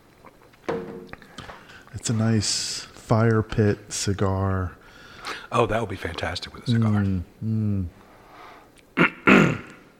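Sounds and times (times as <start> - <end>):
speech: 2.0 - 4.8, 5.5 - 8.0
throat clearing close to the microphone: 9.0 - 9.9.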